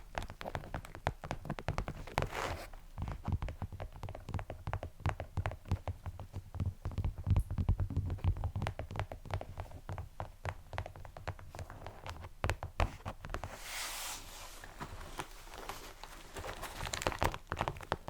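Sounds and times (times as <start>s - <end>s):
ASMR crisp taps and clicks: 0.0s - 13.5s, 15.2s - 18.0s.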